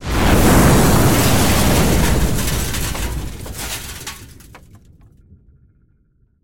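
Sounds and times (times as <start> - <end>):
very powerful explosion: 0.0 - 4.8
windows blown out by explosion: 0.5 - 4.8.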